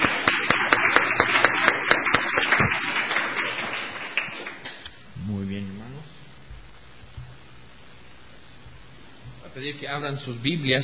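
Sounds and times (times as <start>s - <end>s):
audience applause: 0.0s - 4.8s
speech: 9.9s - 10.8s.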